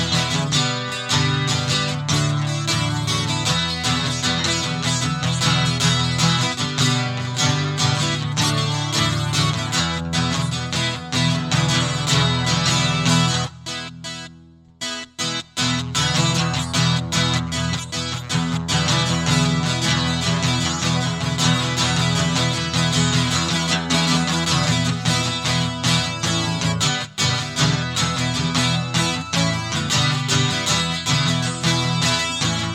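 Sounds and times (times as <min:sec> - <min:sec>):
guitars solo: 0:00.0 - 0:32.7.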